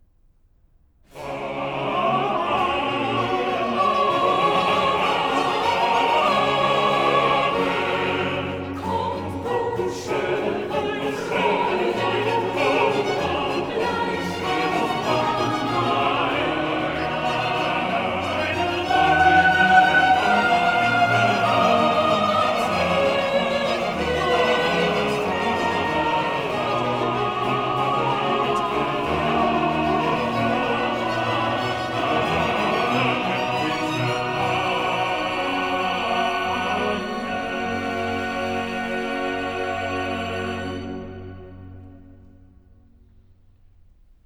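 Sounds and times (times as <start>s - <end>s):
choir singing: 1.1s - 42.4s.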